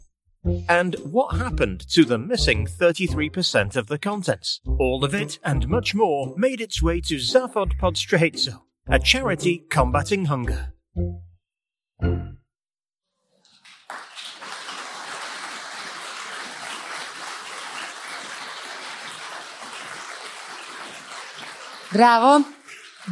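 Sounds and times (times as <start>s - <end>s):
speech: 0.5s - 11.2s, 12.0s - 12.4s, 21.9s - 23.1s
audience applause after a winning case competition entry: 13.5s - 23.1s.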